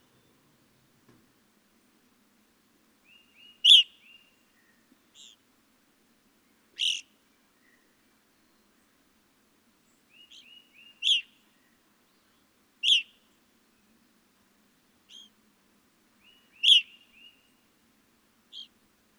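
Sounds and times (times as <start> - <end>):
Evening Grosbeak calling: 3.1 - 5.4, 6.8 - 7.9, 10.1 - 11.3, 15.1 - 15.3, 16.2 - 17.5, 18.5 - 18.8.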